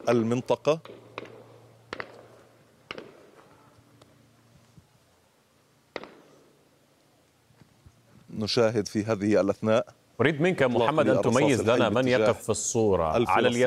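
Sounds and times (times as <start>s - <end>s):
speech: 0.0s - 1.0s, 8.4s - 13.6s
live gunshots fired toward young men: 0.0s - 3.6s, 5.9s - 6.5s.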